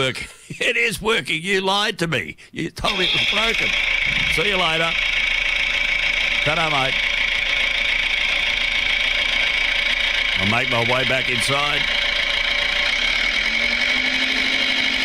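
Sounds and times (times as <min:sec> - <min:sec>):
speech: 0:00.0 - 0:05.1, 0:06.4 - 0:07.1, 0:10.4 - 0:12.0
small tractor engine idling and driving off: 0:02.8 - 0:15.0.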